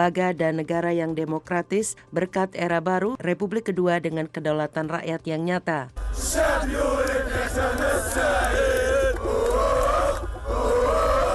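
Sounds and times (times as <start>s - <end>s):
speech: 0.0s - 8.7s
street demonstration crowd shouting and chanting: 6.0s - 11.3s.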